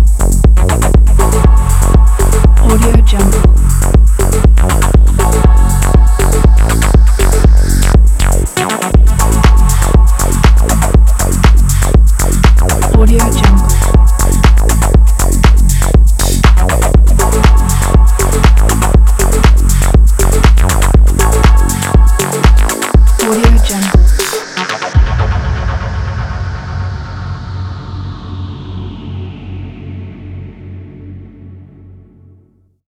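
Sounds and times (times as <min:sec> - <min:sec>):
fashion techno music: 0:00.0 - 0:26.0.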